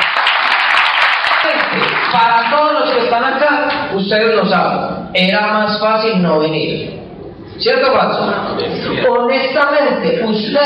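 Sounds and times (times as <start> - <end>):
auditorium audience applause: 0.0 - 2.6
speech: 2.1 - 7.0, 7.6 - 10.6.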